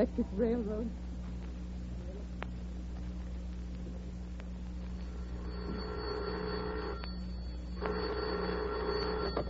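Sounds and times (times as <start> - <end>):
speech: 0.0 - 1.0
low electrical hum: 0.0 - 9.4
old telephone bell ringing: 5.1 - 9.4.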